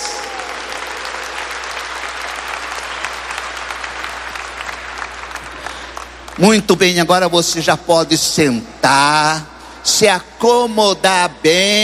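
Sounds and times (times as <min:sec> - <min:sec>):
audience applauding in church: 0:00.0 - 0:06.4
speech: 0:06.4 - 0:11.8.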